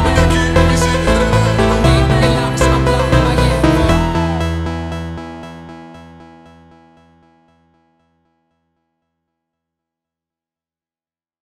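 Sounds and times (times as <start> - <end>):
slowed reverb music: 0.0 - 7.9.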